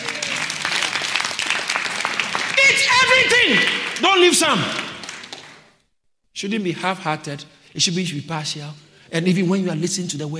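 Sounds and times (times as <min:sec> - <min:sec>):
audience clapping: 0:00.0 - 0:05.8
speech: 0:03.2 - 0:04.8, 0:06.4 - 0:10.3.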